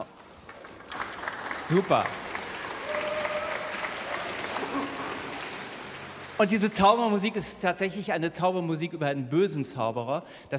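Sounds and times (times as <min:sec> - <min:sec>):
crowd, orchestra applauding: 0:00.0 - 0:07.3
speech: 0:01.7 - 0:02.2, 0:06.4 - 0:10.5.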